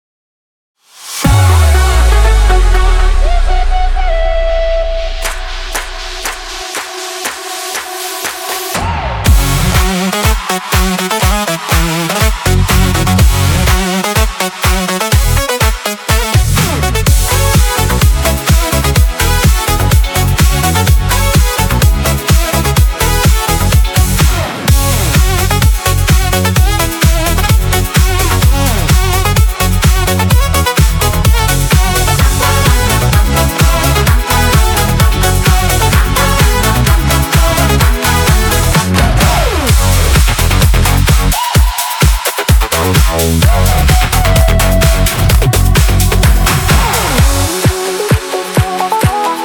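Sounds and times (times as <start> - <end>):
EDM remix of a folk song: 1.2 - 49.4.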